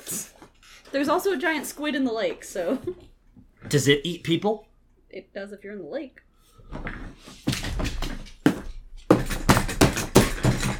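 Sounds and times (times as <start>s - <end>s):
speech: 0.9s - 3.0s, 3.7s - 6.9s
chair being beaten: 6.7s - 10.7s.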